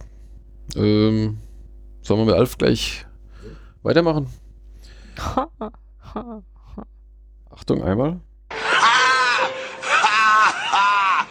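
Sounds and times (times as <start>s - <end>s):
speech: 0.7s - 1.4s, 2.0s - 3.1s, 3.8s - 4.4s, 5.2s - 6.9s, 7.6s - 8.3s
excited cheering yell: 8.5s - 11.2s
laughter: 8.5s - 11.2s.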